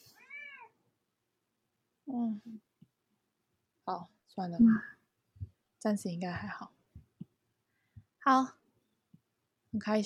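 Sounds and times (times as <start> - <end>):
cat meowing: 0.0 - 0.8
speech: 2.1 - 2.8, 3.9 - 5.0, 5.8 - 6.8, 8.2 - 8.6, 9.7 - 10.0.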